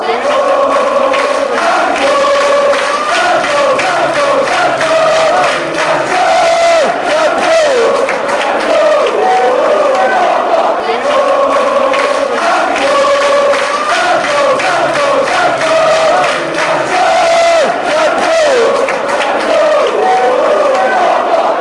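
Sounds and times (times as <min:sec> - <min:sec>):
fans chanting: 0:00.0 - 0:21.5.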